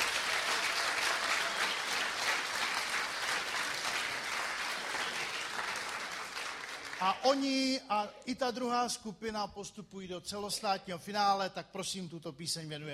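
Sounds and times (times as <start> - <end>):
audience applause: 0.0 - 7.2
speech: 7.0 - 12.9.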